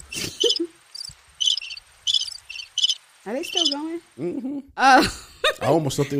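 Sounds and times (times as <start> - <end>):
cricket chirping sound effect: 0.0 - 3.9
speech: 3.3 - 6.1.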